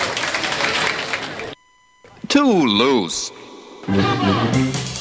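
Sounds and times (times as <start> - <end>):
applause: 0.0 - 1.6
speech: 2.4 - 4.8.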